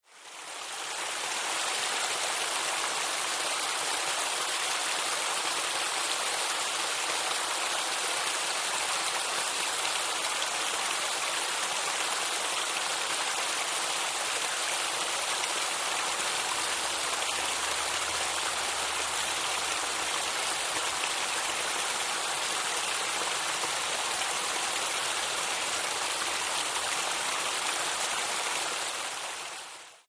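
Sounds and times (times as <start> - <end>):
waterfall: 0.0 - 30.0.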